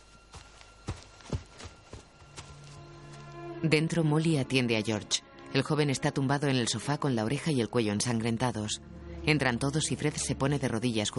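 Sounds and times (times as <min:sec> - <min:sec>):
footsteps of a young man running toward a house: 0:00.0 - 0:03.4
speech: 0:03.6 - 0:11.1.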